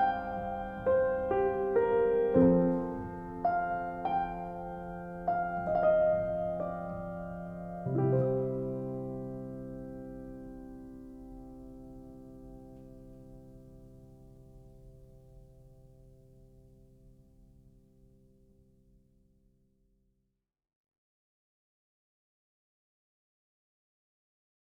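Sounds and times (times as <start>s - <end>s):
solo piano: 0.0s - 19.2s.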